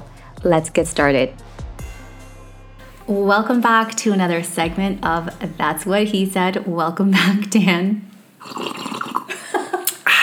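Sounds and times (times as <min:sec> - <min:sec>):
speech: 0:00.4 - 0:01.5, 0:03.1 - 0:08.7
laughter: 0:02.9 - 0:10.2
breathy rush of air: 0:08.0 - 0:10.2
person sipping hot lemon water: 0:08.0 - 0:10.2.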